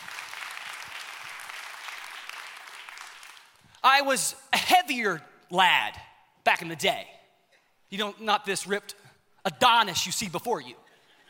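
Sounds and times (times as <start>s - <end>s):
audience applause: 0.0s - 3.7s
speech: 3.8s - 7.2s, 7.9s - 10.8s.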